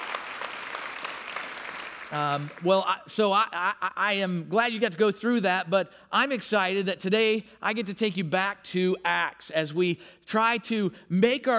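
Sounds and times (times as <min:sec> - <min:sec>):
audience applause: 0:00.0 - 0:02.7
speech: 0:02.1 - 0:11.5.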